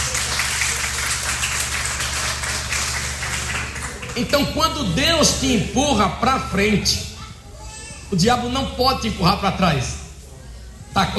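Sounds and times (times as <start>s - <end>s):
audience applause: 0.0s - 5.0s
speech: 4.2s - 7.1s, 8.1s - 10.0s, 11.0s - 11.1s.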